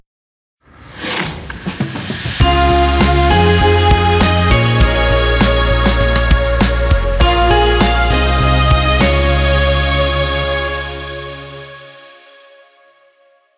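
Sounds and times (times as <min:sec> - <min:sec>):
jingle: 0:02.4 - 0:11.7.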